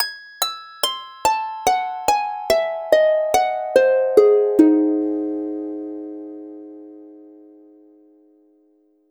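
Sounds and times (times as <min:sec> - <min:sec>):
musical motif: 0:01.2 - 0:08.3.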